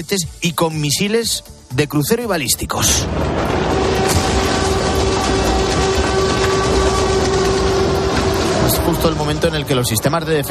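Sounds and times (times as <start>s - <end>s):
speech: 0.0s - 4.2s, 8.8s - 10.4s
air raid sirens: 3.0s - 10.4s.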